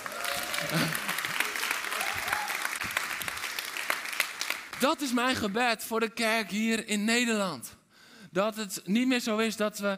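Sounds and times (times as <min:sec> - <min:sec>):
audience applause: 0:00.0 - 0:05.4
speech: 0:00.6 - 0:01.1, 0:04.8 - 0:07.7, 0:08.4 - 0:09.9.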